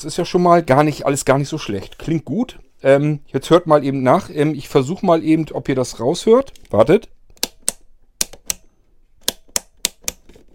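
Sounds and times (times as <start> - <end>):
speech: 0.0 - 7.2
wall switches flipped on and off: 7.3 - 10.2.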